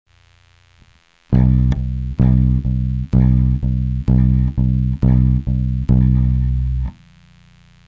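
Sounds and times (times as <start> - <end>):
bass accent: 1.3 - 7.0.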